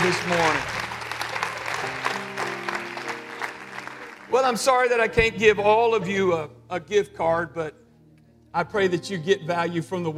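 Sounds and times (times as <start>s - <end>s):
audience applauding during a church service: 0.0s - 4.9s
speech: 0.1s - 0.9s, 4.4s - 7.8s, 8.5s - 10.1s.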